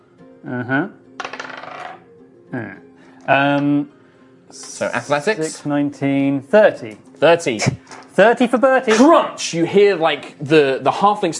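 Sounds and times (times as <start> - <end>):
speech: 0.4 - 1.0, 2.5 - 11.3
dice being rolled: 1.2 - 2.1.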